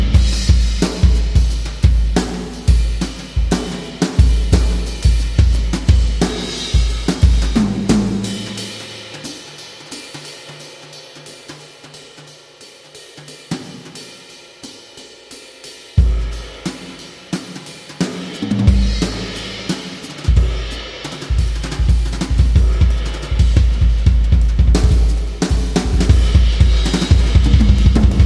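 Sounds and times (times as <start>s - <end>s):
energetic jazz drums: 0.0s - 28.2s.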